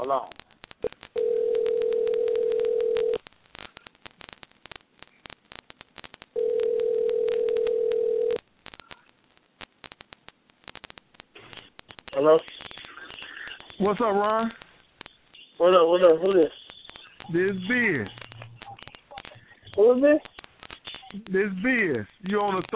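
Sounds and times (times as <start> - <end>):
speech: 0.0 - 1.0, 13.8 - 14.6, 15.6 - 16.6, 17.3 - 18.2, 19.8 - 20.3, 21.2 - 22.7
faint telephone line clicks and noise: 0.0 - 22.7
telephone ringback tone: 1.2 - 3.2, 6.4 - 8.4.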